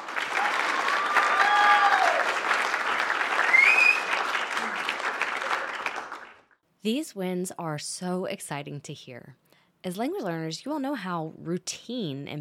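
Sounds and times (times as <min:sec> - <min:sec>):
crowd clapping: 0:00.0 - 0:06.6
high whistle-like tones: 0:03.5 - 0:04.2
speech: 0:06.8 - 0:12.3.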